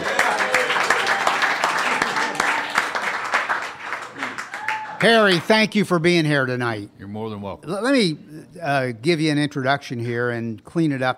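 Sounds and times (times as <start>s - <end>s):
audience applause: 0.0s - 5.5s
speech: 5.0s - 11.1s.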